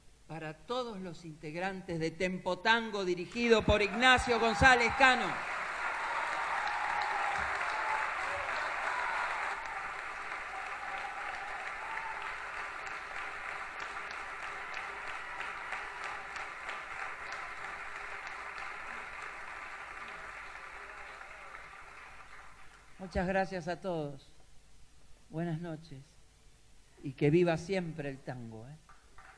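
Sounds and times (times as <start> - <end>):
speech: 0.3 - 5.5, 23.1 - 24.3, 25.3 - 26.1, 27.0 - 28.8
concert audience applause: 3.4 - 23.3.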